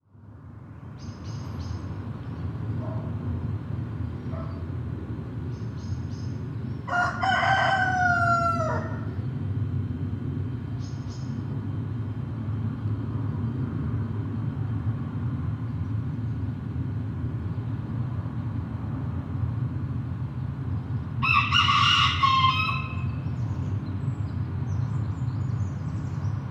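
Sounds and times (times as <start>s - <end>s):
low traffic rumble: 0.1s - 26.4s
rooster crowing: 6.9s - 9.2s, 21.2s - 23.2s.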